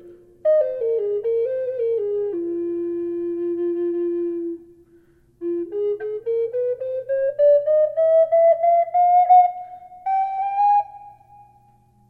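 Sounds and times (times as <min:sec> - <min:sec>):
amboyna wood flute with reverb: 0:00.0 - 0:12.0.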